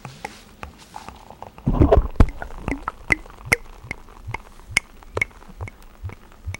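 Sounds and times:
beer pouring from a bottle: 1.6 - 6.5.

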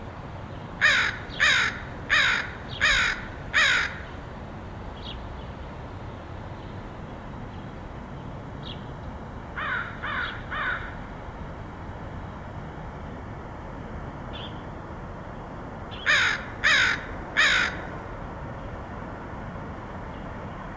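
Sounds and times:
low hum: 0.0 - 20.7
crow cawing: 0.8 - 4.1, 9.6 - 11.0, 16.0 - 17.9.

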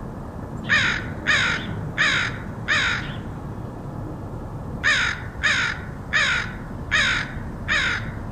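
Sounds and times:
crow cawing: 0.7 - 3.2, 4.8 - 8.3.

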